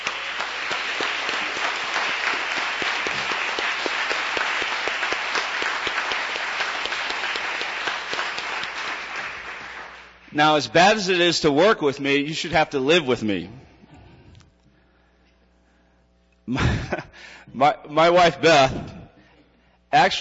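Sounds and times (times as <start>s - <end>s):
audience applause: 0.0s - 10.2s
speech: 10.4s - 13.6s, 17.6s - 18.9s, 19.9s - 20.1s.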